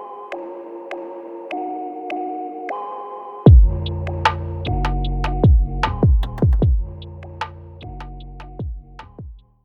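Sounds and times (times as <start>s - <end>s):
tropical drum kit: 3.5s - 9.4s.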